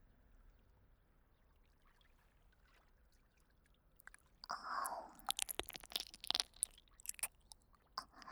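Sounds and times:
ear licking ASMR: 4.0s - 7.9s.

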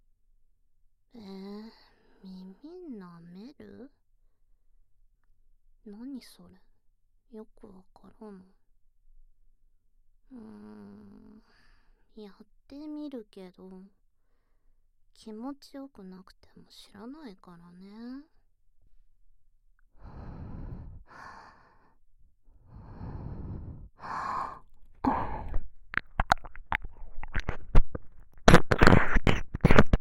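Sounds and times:
ear licking: 24.8s - 29.9s.

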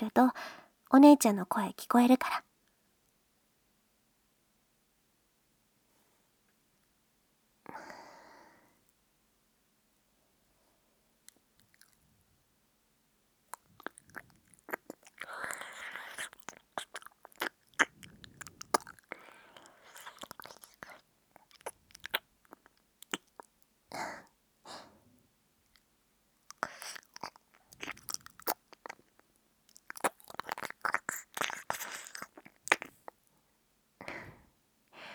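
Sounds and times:
speech: 0.0s - 2.5s
ear licking wet mouth sounds: 13.5s - 23.6s, 26.5s - 33.2s.

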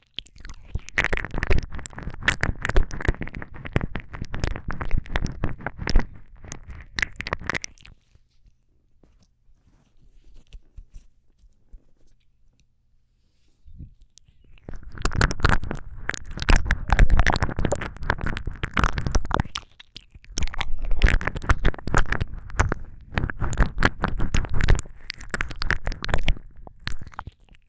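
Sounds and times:
tongue licking deep in an ear: 0.0s - 8.3s, 13.8s - 27.6s.

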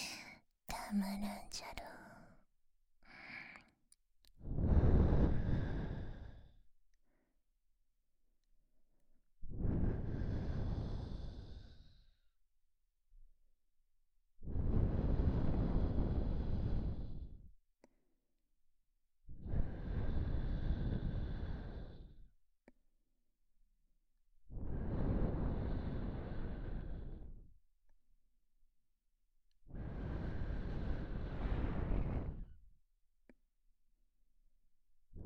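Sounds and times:
speech: 0.9s - 2.1s
warm breath blown near the ear: 4.4s - 6.6s, 9.5s - 12.2s, 14.5s - 17.4s, 19.4s - 22.2s, 24.5s - 27.5s, 29.7s - 32.5s.

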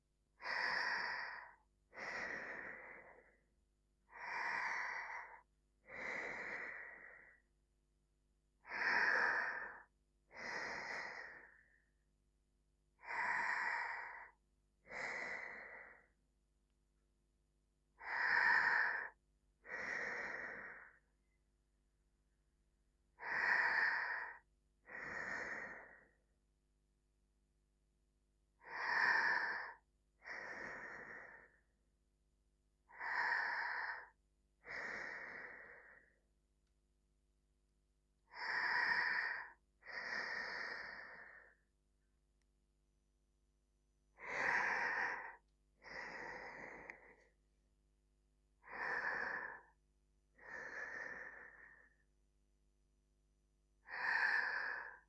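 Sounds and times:
sleeping breath: 0.4s - 3.4s, 4.1s - 7.5s, 8.6s - 11.8s, 13.0s - 16.2s, 18.0s - 21.1s, 23.2s - 26.2s, 28.6s - 31.6s, 32.9s - 36.2s, 38.2s - 41.6s, 44.2s - 47.3s, 48.6s - 49.8s, 50.4s - 52.0s, 53.8s - 55.0s.

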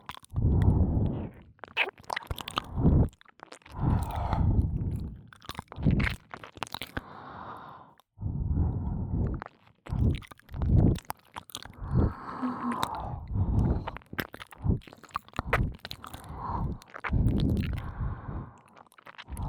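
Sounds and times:
ear licking in both ears: 0.0s - 7.0s, 9.2s - 19.4s
ear nibbling: 1.0s - 7.0s, 9.3s - 18.0s.

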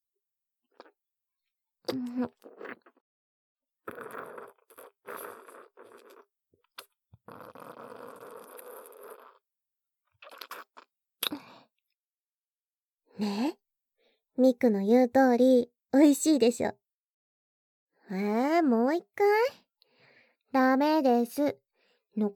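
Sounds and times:
speech: 1.9s - 2.9s, 13.2s - 13.6s, 14.4s - 16.8s, 18.1s - 19.6s, 20.5s - 21.6s, 22.2s - 22.3s
person chewing a bite of food: 3.9s - 9.4s, 10.2s - 11.4s.

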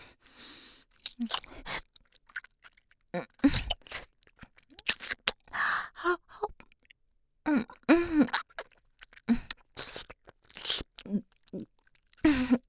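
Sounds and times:
ear licking sounds on the left: 0.9s - 5.6s, 7.6s - 12.6s.

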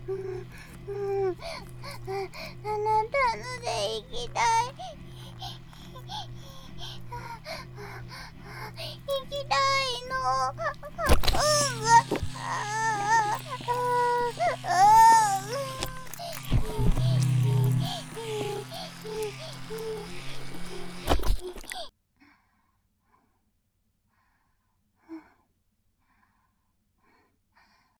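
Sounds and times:
vibrator being pulled out: 0.0s - 21.9s.

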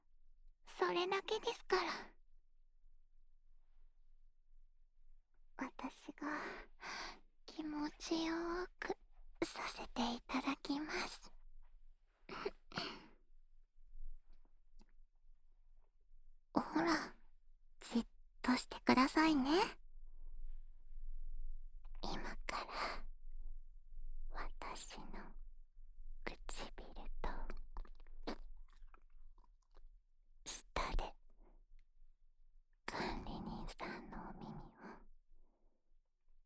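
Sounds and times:
person whispering in the right ear: 0.7s - 2.1s, 7.5s - 11.3s, 12.3s - 13.0s, 16.6s - 17.2s, 17.8s - 19.7s, 22.0s - 23.0s, 24.4s - 25.4s, 26.3s - 29.0s, 30.5s - 31.2s, 32.9s - 35.0s.

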